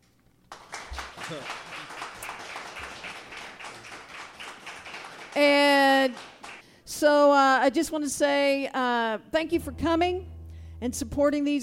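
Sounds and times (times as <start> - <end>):
round of applause: 0.5 - 6.6
speech: 1.3 - 1.6, 5.4 - 6.3, 7.0 - 11.6.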